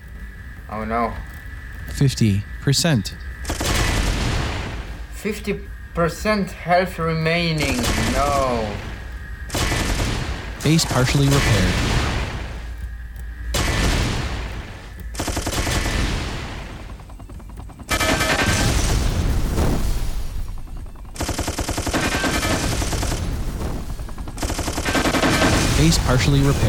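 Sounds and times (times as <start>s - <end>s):
speech: 0.7s - 1.3s, 1.9s - 3.3s, 5.2s - 8.9s, 10.6s - 11.9s, 25.9s - 26.6s
machine-gun fire in a base-defense video game: 3.4s - 4.8s, 7.6s - 8.7s, 9.5s - 12.5s, 13.5s - 17.0s, 17.9s - 20.6s, 21.2s - 26.6s
explosions in a base-defense video game: 3.4s - 5.1s, 7.6s - 12.8s, 13.5s - 16.9s, 18.0s - 20.6s, 25.0s - 26.6s.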